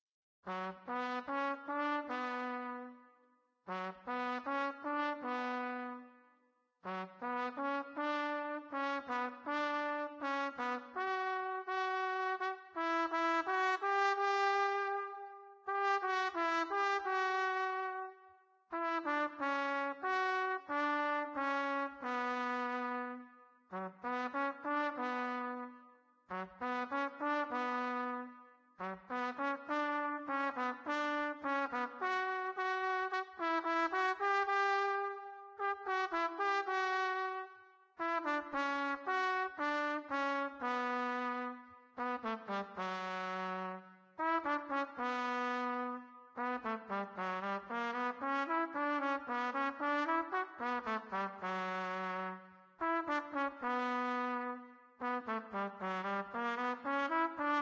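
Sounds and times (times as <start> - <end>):
trumpet: 0.4 - 57.6.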